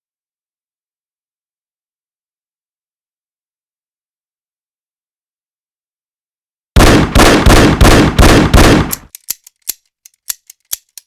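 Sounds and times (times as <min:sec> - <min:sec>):
shooting: 0:06.8 - 0:11.0.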